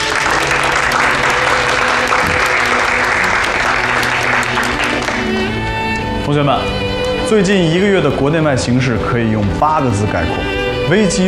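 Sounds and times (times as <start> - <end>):
audience applause: 0.0 - 5.6
speech: 6.3 - 11.2.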